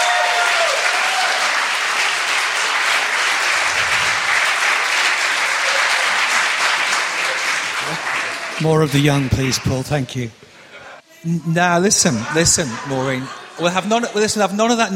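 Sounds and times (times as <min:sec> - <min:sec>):
audience applause: 0:00.0 - 0:10.0
speech: 0:08.6 - 0:10.4, 0:11.2 - 0:14.9
laughter: 0:11.9 - 0:14.3.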